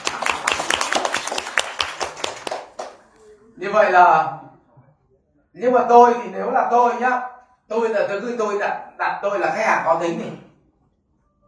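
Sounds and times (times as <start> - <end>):
crowd applauding: 0.0 - 3.1
speech: 3.6 - 4.5, 5.6 - 10.4.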